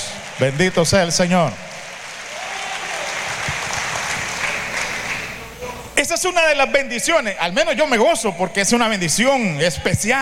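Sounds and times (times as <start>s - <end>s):
audience applause: 0.0s - 5.6s
speech: 0.4s - 1.7s, 6.1s - 10.2s.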